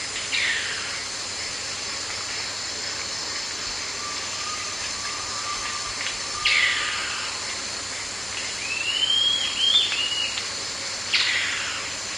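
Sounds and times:
Hairy-crested Antbird calling: 0.1 - 1.1, 3.5 - 10.4, 11.1 - 12.0.

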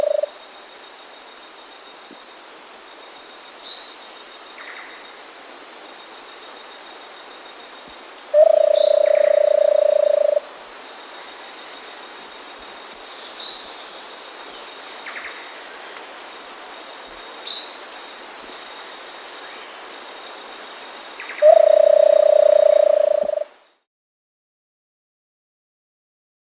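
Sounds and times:
Versicolored Barbet Eubucco versicolor calling: 0.0 - 0.4, 8.4 - 10.5, 21.2 - 23.5.

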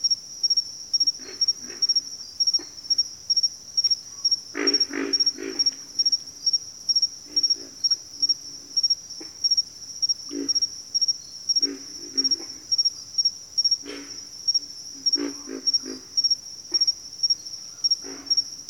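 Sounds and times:
shrill insect buzzing: 0.0 - 18.6
pig frog grunting: 1.2 - 2.0, 4.5 - 6.0, 10.3 - 10.7, 11.6 - 12.8, 13.8 - 14.3, 14.9 - 16.9, 18.0 - 18.6.

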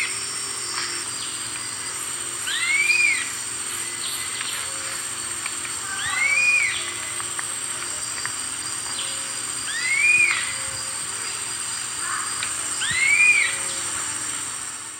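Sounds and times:
insect drone: 0.0 - 14.9
chestnut-capped puffbird whistled calls: 2.4 - 5.0, 5.9 - 7.2, 9.0 - 11.0, 12.8 - 14.0.

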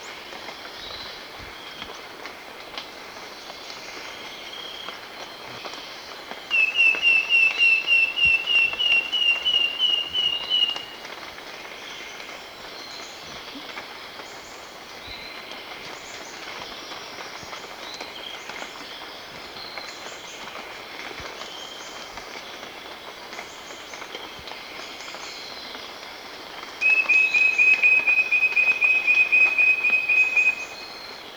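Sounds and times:
Wing-banded wren call in Ecuador: 6.5 - 11.0, 26.8 - 31.2.

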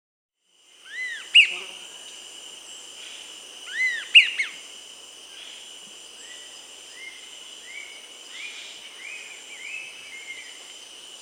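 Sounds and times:
Sirystes sibilator calling in Peru: 0.9 - 1.6, 3.7 - 4.6.

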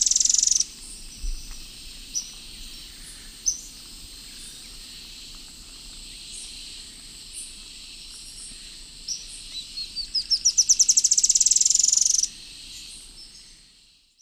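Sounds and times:
Terenura spodioptila song and calls in South American Eastern Lowlands: 0.0 - 5.3, 6.0 - 14.2.

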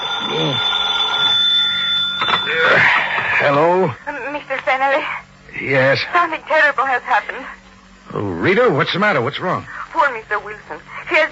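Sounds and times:
telephone ringing: 0.0 - 3.7
speech: 3.4 - 4.0, 4.8 - 11.3.

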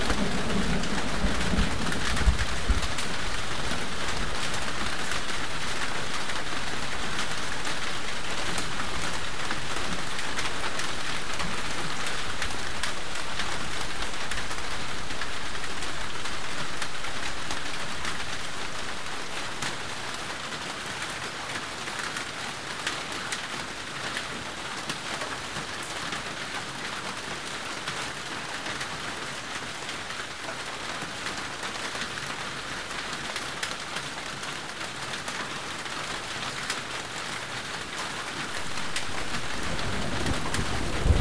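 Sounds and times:
thunder: 0.0 - 3.9, 39.1 - 41.2
rain: 0.0 - 41.2.

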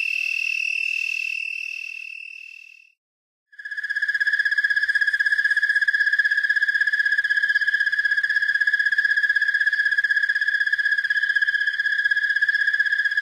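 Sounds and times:
broad-winged tree cricket singing a continuous trill: 0.0 - 3.0, 3.6 - 13.2.

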